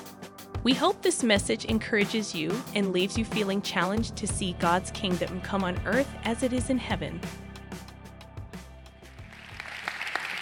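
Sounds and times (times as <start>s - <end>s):
speech: 0.6s - 7.4s
audience clapping: 9.2s - 10.3s.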